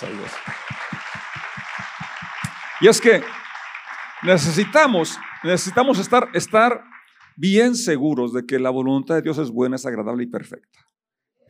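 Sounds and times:
speech: 0:00.0 - 0:00.7, 0:02.8 - 0:03.4, 0:04.2 - 0:10.9
audience applause: 0:00.0 - 0:07.9.

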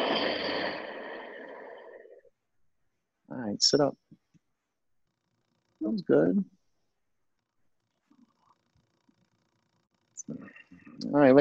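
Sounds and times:
deep breath out during a yoga breathing exercise: 0:00.0 - 0:02.2
speech: 0:03.5 - 0:04.0, 0:05.8 - 0:06.6, 0:10.3 - 0:11.4.

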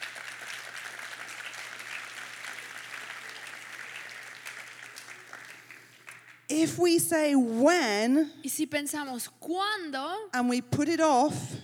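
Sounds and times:
audience applause: 0:00.0 - 0:06.5
speech: 0:06.5 - 0:11.5.

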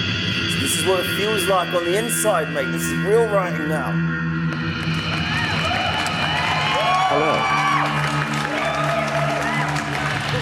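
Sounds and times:
sustained tones: 0:00.0 - 0:06.4
speech: 0:00.8 - 0:04.2, 0:07.1 - 0:07.6
audience applause sound effect: 0:04.5 - 0:10.4
audience cheering sound effect: 0:04.9 - 0:10.4.

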